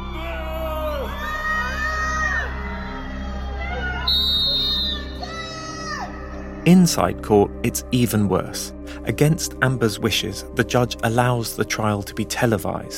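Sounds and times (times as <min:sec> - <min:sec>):
crowd jeering and whooping: 0:00.0 - 0:05.8
speech: 0:06.6 - 0:12.9.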